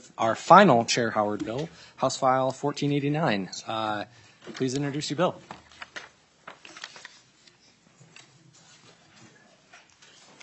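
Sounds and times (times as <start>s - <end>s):
speech: 0.2s - 5.6s
papers being shuffled and handled: 4.1s - 10.4s.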